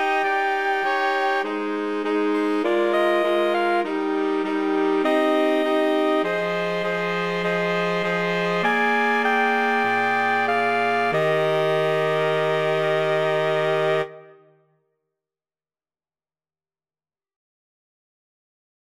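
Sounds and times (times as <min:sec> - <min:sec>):
saxophone quartet playing: 0:00.0 - 0:14.4.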